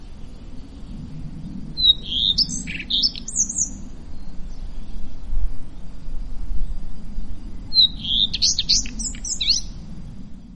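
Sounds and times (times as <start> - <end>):
low rumble: 0.0 - 10.5
common redstart singing: 1.5 - 5.2, 7.6 - 9.8.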